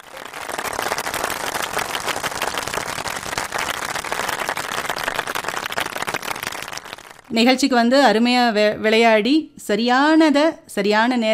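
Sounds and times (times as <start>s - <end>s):
group hand clapping: 0.0s - 7.3s
speech: 7.3s - 11.3s.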